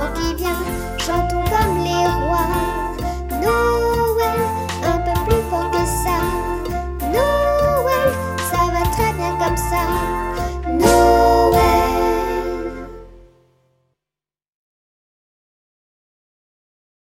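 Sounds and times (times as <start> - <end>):
Christmas jazz: 0.0 - 13.4.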